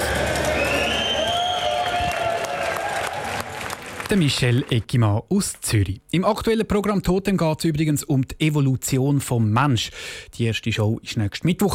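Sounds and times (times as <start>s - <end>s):
helpers clapping: 0.0s - 4.8s
speech: 4.1s - 11.7s.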